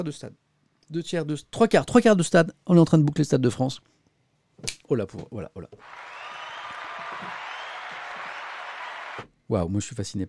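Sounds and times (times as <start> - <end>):
speech: 0.0 - 4.0, 4.6 - 6.1, 9.5 - 10.2
applause: 5.8 - 9.3.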